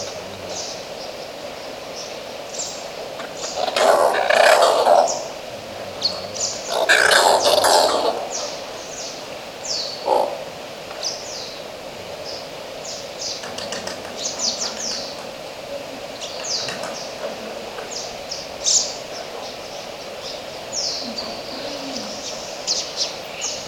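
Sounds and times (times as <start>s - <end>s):
oilbird: 0.0s - 23.6s.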